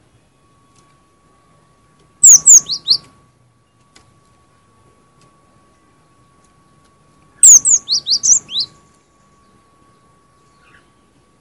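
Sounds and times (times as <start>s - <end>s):
faint steady hum: 0.0s - 11.3s
cinereous tit calling: 2.2s - 3.0s, 7.4s - 8.7s.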